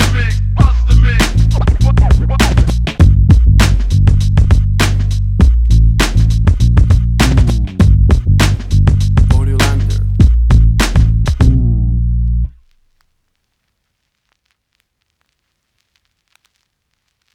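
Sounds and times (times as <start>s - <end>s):
1990s hip hop music: 0.0s - 11.7s.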